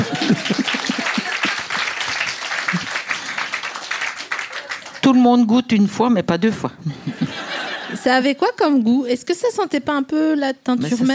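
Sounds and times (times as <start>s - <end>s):
laughter: 0.0s - 3.1s, 6.8s - 8.2s
audience applause: 0.0s - 5.1s
speech: 5.2s - 11.1s.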